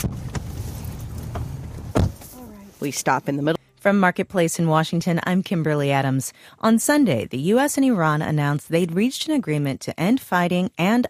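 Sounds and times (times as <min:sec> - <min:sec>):
vehicle bump: 0:00.0 - 0:02.4
vehicle driving on a dirt road through a vast field in eastern Ukraine: 0:00.0 - 0:02.9
speech: 0:02.8 - 0:11.0.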